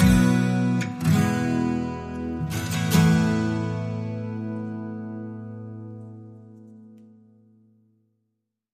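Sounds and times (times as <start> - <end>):
percussion: 0.0 - 3.4
acoustic guitar: 0.0 - 8.0.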